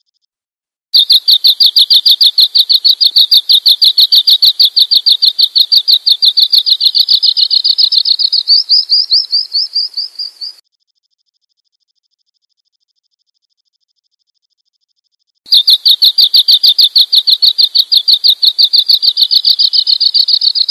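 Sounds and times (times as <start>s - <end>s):
bird chirping: 1.0s - 10.6s, 15.5s - 20.6s.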